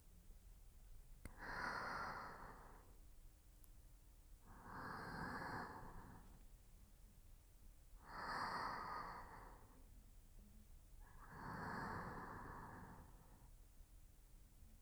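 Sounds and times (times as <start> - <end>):
person breathing in sleep on left side: 1.3 - 3.0, 4.5 - 6.4, 8.0 - 9.9, 11.1 - 13.5.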